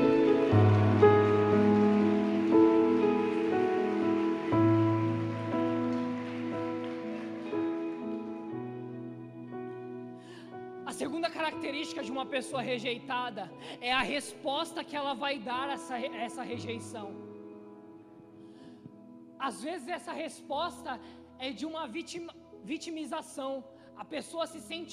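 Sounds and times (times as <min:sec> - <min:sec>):
audience applauding: 0:00.0 - 0:09.0
sustained keyboard chords: 0:00.0 - 0:12.3
speech: 0:11.5 - 0:17.2, 0:19.4 - 0:24.9.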